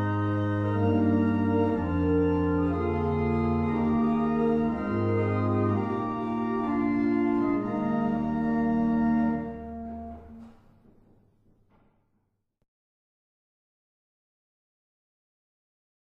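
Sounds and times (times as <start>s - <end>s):
barrel organs: 0.0s - 10.7s.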